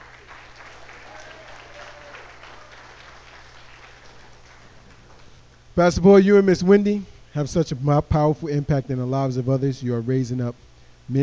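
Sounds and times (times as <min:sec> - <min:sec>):
audience applause: 0:00.0 - 0:05.4
speech: 0:05.8 - 0:11.2.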